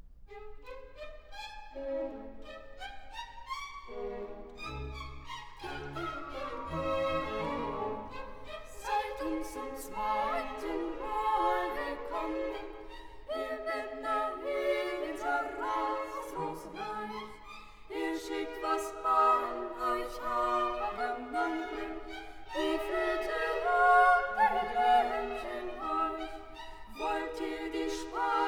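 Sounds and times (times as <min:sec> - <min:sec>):
opera trio singing: 0:05.7 - 0:28.4.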